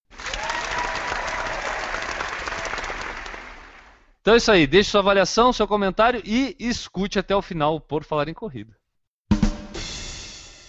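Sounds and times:
applause: 0:00.0 - 0:04.2
speech: 0:04.2 - 0:08.8.

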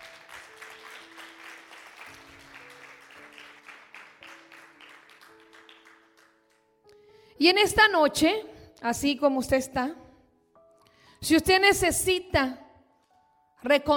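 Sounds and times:
audience applauding: 0:00.0 - 0:06.7
speech: 0:07.4 - 0:10.0, 0:11.2 - 0:12.6, 0:13.6 - 0:13.9.

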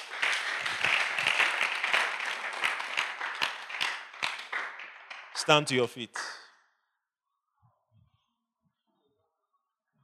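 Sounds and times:
congregation clapping at a church service: 0:00.0 - 0:06.4
speech: 0:05.5 - 0:06.4.

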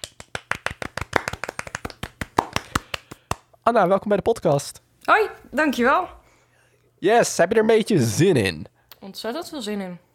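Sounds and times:
small audience clapping for a guest: 0:00.0 - 0:03.5
speech: 0:03.7 - 0:06.2, 0:07.0 - 0:10.0.

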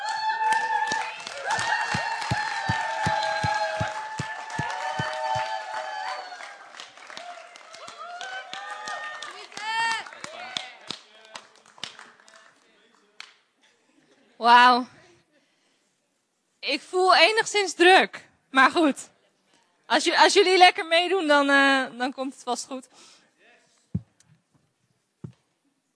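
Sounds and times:
cheering voices and whistles: 0:00.0 - 0:09.4
audience applause: 0:00.0 - 0:13.0
speech: 0:14.5 - 0:15.0, 0:16.7 - 0:19.1, 0:19.9 - 0:23.2.

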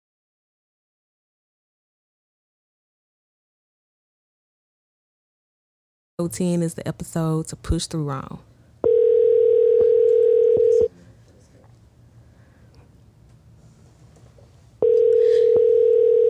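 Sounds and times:
speech: 0:06.2 - 0:08.5
telephone call tone: 0:08.8 - 0:10.9, 0:14.8 - 0:16.2.

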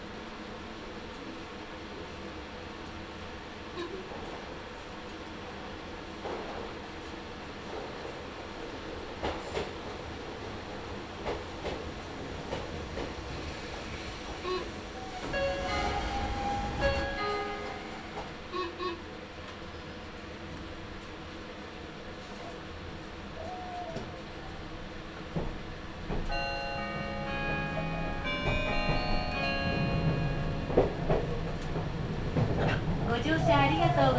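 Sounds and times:
Meitetsu Toyokawa Line limited express train running rumble: 0:06.0 - 0:21.4, 0:23.9 - 0:34.1.

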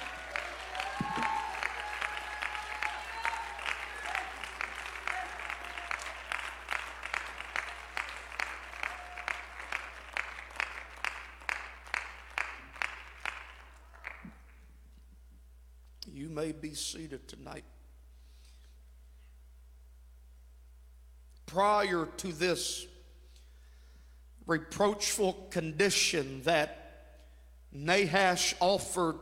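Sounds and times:
large audience clapping: 0:00.0 - 0:14.6
speech: 0:16.4 - 0:17.7, 0:21.5 - 0:22.9, 0:24.5 - 0:26.8, 0:27.8 - 0:29.2.

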